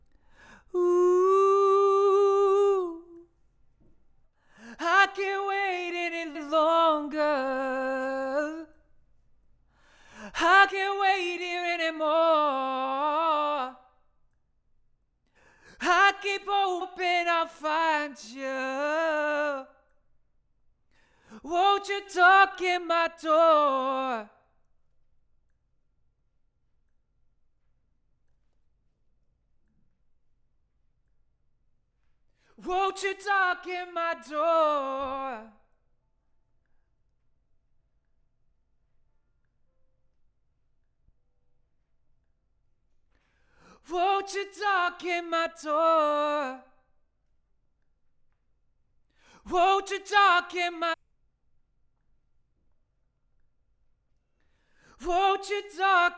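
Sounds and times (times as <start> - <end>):
vocals: 0.0 - 14.1, 15.2 - 20.1, 20.9 - 24.8, 32.4 - 36.0, 43.2 - 47.0, 49.2 - 51.0, 54.5 - 56.1.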